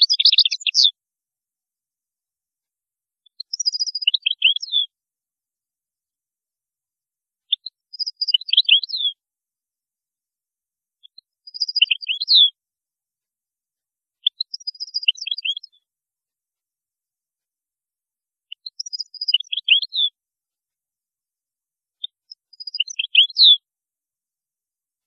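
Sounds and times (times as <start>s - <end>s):
European goldfinch song: 0.0s - 1.0s, 3.2s - 4.9s, 7.5s - 9.2s, 11.0s - 12.6s, 14.2s - 15.9s, 18.5s - 20.2s, 22.0s - 23.6s.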